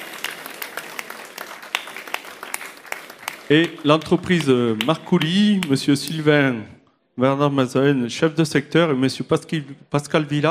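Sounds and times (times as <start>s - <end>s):
audience applause: 0.0s - 5.8s
speech: 3.5s - 10.4s.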